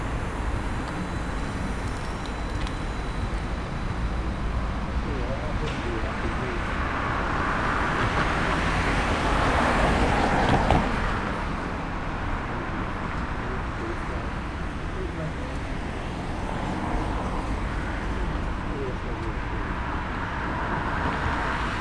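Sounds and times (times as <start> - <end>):
trolleybus at a stop seen from outside: 0.0 - 21.7.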